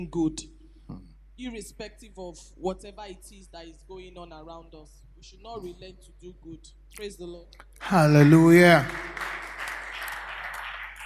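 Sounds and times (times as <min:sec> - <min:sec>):
speech: 0:00.0 - 0:09.3
audience clapping: 0:07.8 - 0:11.0.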